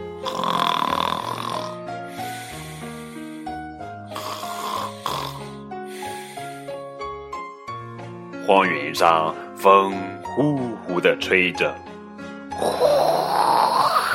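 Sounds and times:
snoring: 0.2s - 3.1s, 4.1s - 6.6s, 12.6s - 14.1s
speech: 8.5s - 11.9s.

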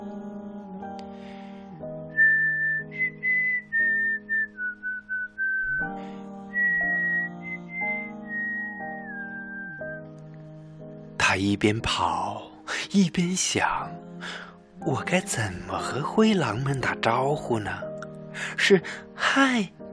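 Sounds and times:
steady instrumental backing music: 0.0s - 19.9s
high clear whistled tune: 2.1s - 10.1s
speech: 11.3s - 19.8s.

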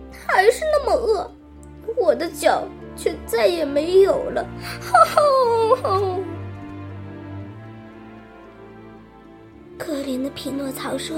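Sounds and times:
speech: 0.3s - 6.3s, 9.8s - 11.1s
storyteller imitating Pinocchio crying loudly: 4.8s - 6.4s.

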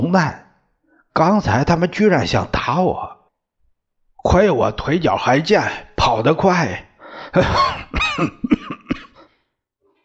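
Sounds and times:
speech: 0.1s - 0.4s, 1.2s - 3.1s, 4.2s - 8.6s
violent coughing: 7.3s - 9.4s.

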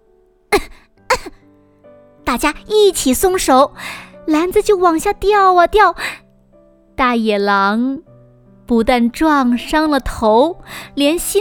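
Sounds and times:
cough: 0.6s - 1.4s
speech: 2.3s - 6.2s, 7.0s - 8.1s, 8.7s - 11.3s.

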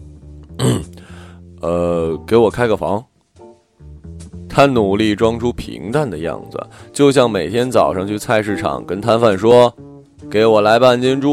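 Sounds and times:
person coughing: 0.5s - 1.1s
speech: 1.6s - 3.1s, 4.6s - 11.3s.

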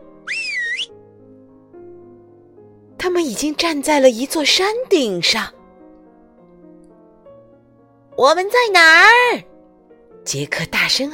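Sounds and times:
whistling: 0.2s - 0.9s
speech: 3.1s - 5.6s, 8.2s - 9.5s, 10.2s - 11.1s.

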